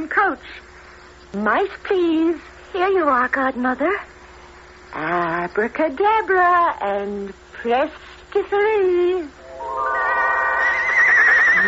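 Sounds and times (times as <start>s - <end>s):
speech: 1.3s - 4.1s, 4.9s - 9.9s
white horse pulling a golden coach neighing: 10.2s - 11.6s.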